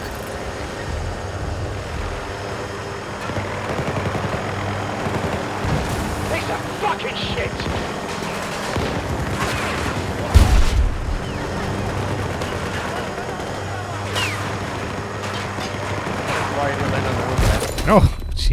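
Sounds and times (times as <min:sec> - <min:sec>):
video game gunfire from sniper rifles and an M60 machine gun: 0:00.0 - 0:18.3
players talking: 0:00.8 - 0:18.5
loud blast in a video game: 0:05.6 - 0:18.5.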